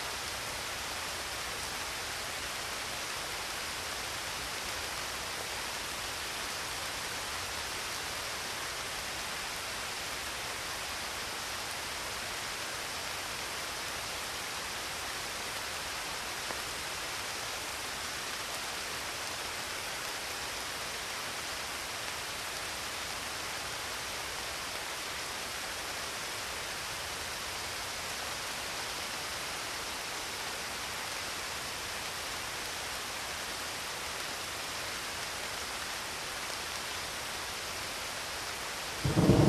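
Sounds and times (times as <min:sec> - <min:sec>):
rain in the Alps: 0:00.0 - 0:39.4
thunderstorm in the Alps: 0:39.0 - 0:39.4.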